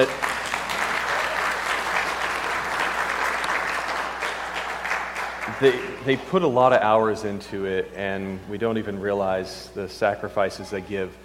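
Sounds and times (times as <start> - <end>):
crowd clapping: 0.0 - 6.3
speech: 5.6 - 11.2.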